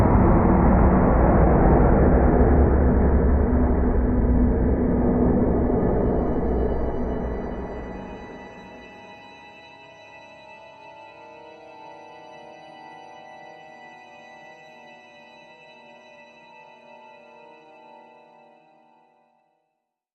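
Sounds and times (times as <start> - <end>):
secret room ambience: 0.0 - 9.6.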